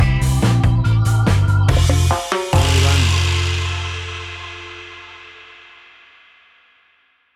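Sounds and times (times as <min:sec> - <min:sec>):
Caribbean ska stinger: 0:00.0 - 0:05.8.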